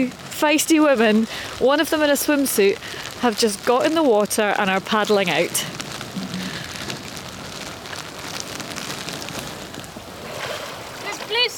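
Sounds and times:
speech: 0.0 - 5.8
rain: 0.0 - 11.5.

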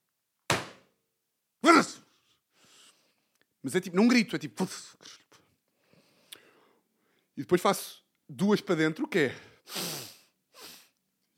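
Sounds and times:
dry punch thump: 0.5 - 0.8
speech: 3.6 - 5.2, 7.4 - 9.9.

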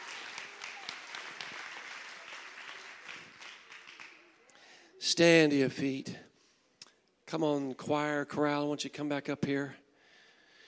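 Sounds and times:
audience clapping hands: 0.0 - 4.7
speech: 5.1 - 6.2, 7.3 - 9.8.

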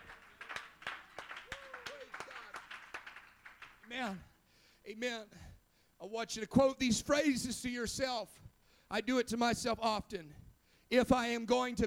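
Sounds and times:
audience clapping hands: 0.0 - 4.3
speech: 3.9 - 11.8.

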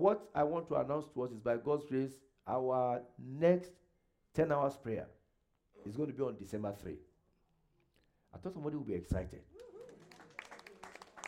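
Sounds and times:
speech: 0.0 - 5.2, 5.8 - 7.1, 8.3 - 9.6
scattered half-hearted audience clapping: 9.4 - 11.2.

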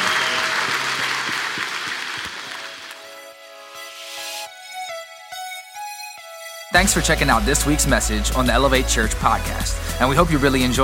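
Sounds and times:
church congregation clapping for a chaplain: 0.0 - 3.4
music with sustained tones: 0.0 - 10.8
speech: 6.8 - 10.8.

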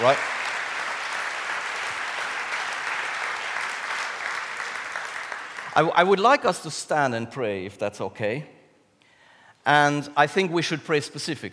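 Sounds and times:
speech: 0.0 - 0.4, 5.8 - 8.6, 9.6 - 11.5
crowd applause: 0.0 - 5.9.

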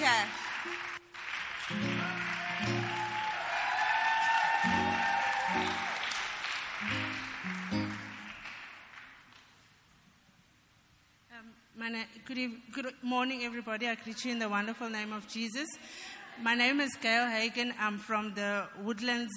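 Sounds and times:
audience applause: 0.0 - 9.5
rhythmic low musical tones: 0.6 - 3.3, 6.8 - 8.4
speech: 11.9 - 19.3.

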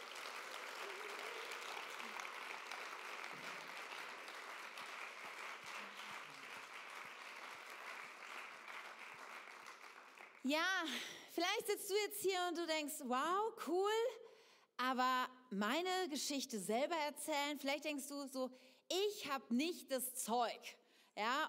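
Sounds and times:
audience applause: 0.0 - 10.5
speech: 10.4 - 14.2, 14.8 - 21.4.

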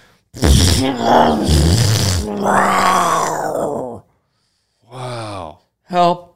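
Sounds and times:
voice imitating a pirate fart: 0.4 - 4.0
speech: 0.8 - 2.8.

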